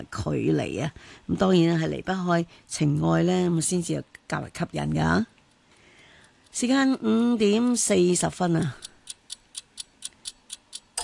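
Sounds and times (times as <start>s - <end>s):
speech: 0.0s - 5.4s, 6.5s - 8.9s
clock ticking: 6.2s - 7.0s, 8.5s - 11.0s.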